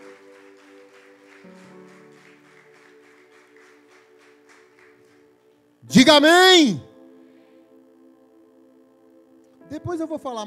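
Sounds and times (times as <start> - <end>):
audience applause: 0.0 - 5.4
speech: 5.9 - 6.9, 9.9 - 10.4.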